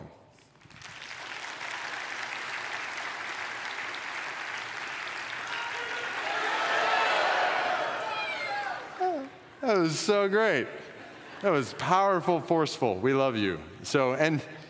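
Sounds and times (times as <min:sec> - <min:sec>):
audience clapping: 0:00.4 - 0:10.0
speech: 0:09.8 - 0:14.6.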